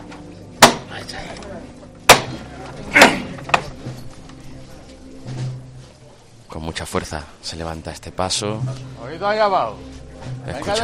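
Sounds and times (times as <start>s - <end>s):
silver knocker struck on procession float: 0.6s - 0.9s, 2.1s - 2.4s
speech: 1.0s - 3.0s, 6.5s - 10.8s.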